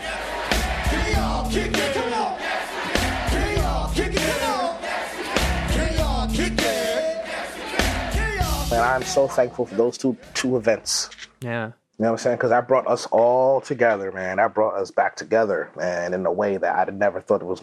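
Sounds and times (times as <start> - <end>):
crowd chanting: 0.0 - 10.7
pulsing bass beat: 0.5 - 2.1, 3.0 - 4.4, 5.4 - 6.8, 7.8 - 9.5
speech: 8.8 - 17.6.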